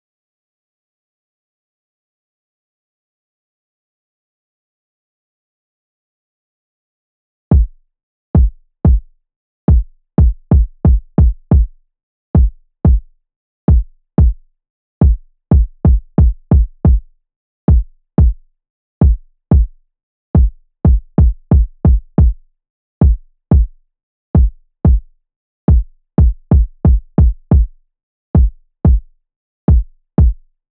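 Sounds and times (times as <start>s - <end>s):
kick drum: 7.5s - 7.8s, 8.4s - 9.0s, 9.7s - 11.7s, 12.4s - 13.0s, 13.7s - 14.4s, 15.0s - 17.0s, 17.7s - 18.4s, 19.0s - 19.7s, 20.4s - 22.4s, 23.0s - 23.7s, 24.4s - 25.0s, 25.7s - 27.7s, 28.4s - 29.0s, 29.7s - 30.4s.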